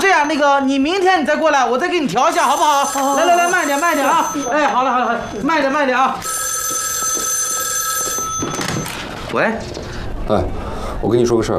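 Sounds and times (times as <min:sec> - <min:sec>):
speech: 0:00.3 - 0:06.4, 0:09.3 - 0:11.5
telephone ringing: 0:02.0 - 0:09.4.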